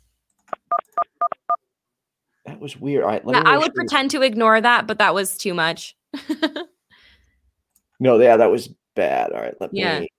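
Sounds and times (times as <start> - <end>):
phone line beeping tones: 0.7 - 1.6
speech: 2.6 - 6.7, 8.0 - 10.1.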